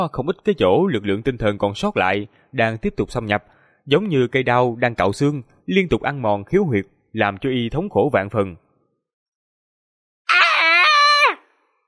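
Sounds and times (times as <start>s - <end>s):
speech: 0.0s - 8.6s
man screaming: 10.3s - 11.5s.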